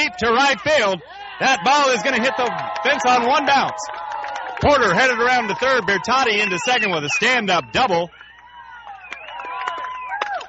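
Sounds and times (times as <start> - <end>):
speech: 0.0 - 4.0, 4.6 - 8.2
baseball crowd reacting: 0.0 - 10.4.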